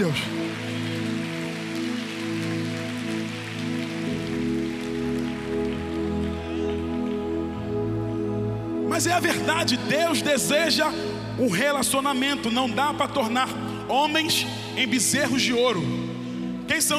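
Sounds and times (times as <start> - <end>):
speech: 0.0 - 0.8, 9.0 - 16.0, 16.7 - 16.9
audience applauding: 0.0 - 8.0.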